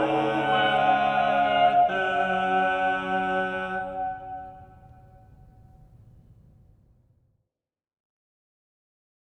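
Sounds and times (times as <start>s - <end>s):
polyphonic rondeau: 0.0s - 5.4s.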